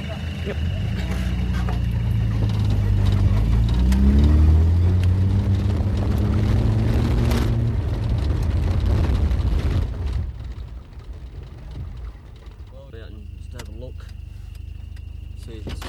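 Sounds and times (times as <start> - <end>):
patrol car engine droning: 0.0 - 15.8
tyre and road noise: 0.0 - 15.8.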